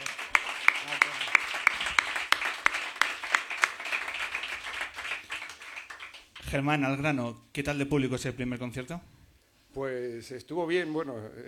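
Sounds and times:
applause: 0.0s - 6.6s
speech: 6.5s - 9.2s, 9.8s - 11.4s.

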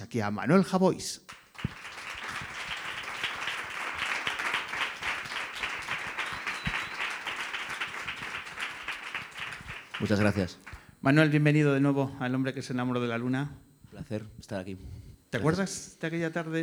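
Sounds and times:
speech: 0.1s - 1.8s, 10.0s - 16.6s
audience applause for arriving guest: 1.3s - 11.0s.

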